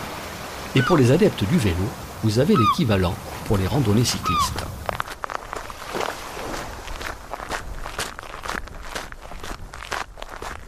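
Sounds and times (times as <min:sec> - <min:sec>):
hiss: 0:00.0 - 0:05.0
speech: 0:00.7 - 0:04.8
footsteps walking down to the beach of Penouet: 0:04.4 - 0:10.6.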